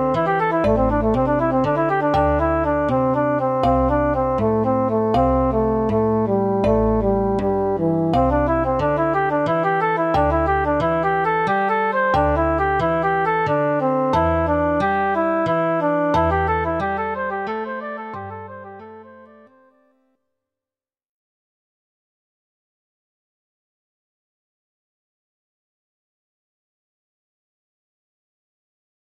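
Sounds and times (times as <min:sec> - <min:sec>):
rhythm changing between 2/4, 3/4 and 4/4 time: 0:00.0 - 0:19.0.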